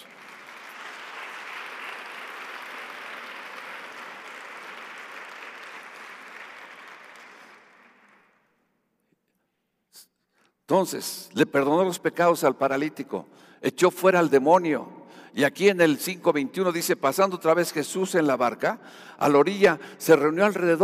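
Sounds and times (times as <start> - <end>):
audience applause: 0.0 - 8.4
speech: 10.7 - 20.8.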